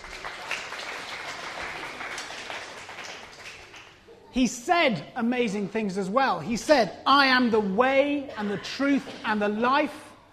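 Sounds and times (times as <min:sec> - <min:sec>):
crowd applause: 0:00.0 - 0:04.1
speech: 0:04.4 - 0:10.1.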